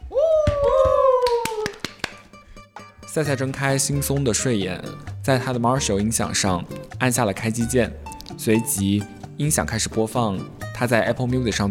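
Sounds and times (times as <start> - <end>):
audience applause: 0.8 - 2.2
speech: 3.1 - 11.7.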